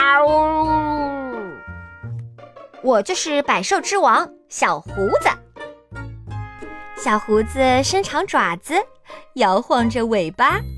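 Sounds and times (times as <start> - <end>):
cat meowing: 0.0 - 1.8
speech: 2.8 - 5.4, 7.0 - 10.7.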